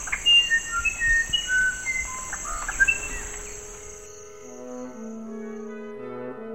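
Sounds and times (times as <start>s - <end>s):
bird song with middle note omitted: 0.0s - 5.9s.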